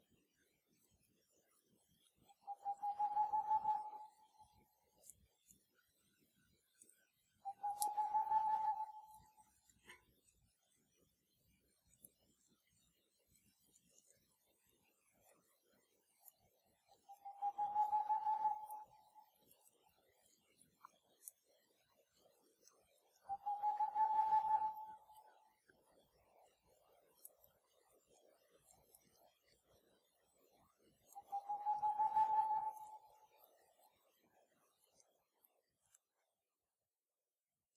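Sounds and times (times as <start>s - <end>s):
Tengmalm's owl calling: 2.6s - 4.1s, 7.5s - 9.2s, 17.2s - 18.9s, 23.3s - 25.0s, 31.3s - 33.1s.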